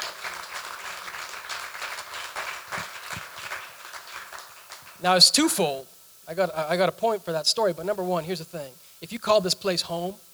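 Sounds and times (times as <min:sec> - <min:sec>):
audience clapping hands: 0:00.0 - 0:05.8
speech: 0:05.0 - 0:10.3.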